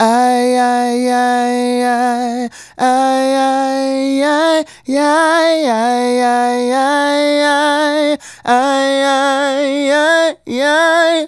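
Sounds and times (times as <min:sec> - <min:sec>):
man singing solo: 0:00.0 - 0:11.2.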